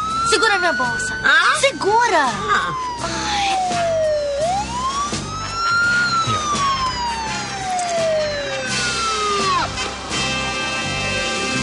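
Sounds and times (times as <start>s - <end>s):
police car siren wailing: 0.0s - 11.5s
speech: 0.3s - 4.2s.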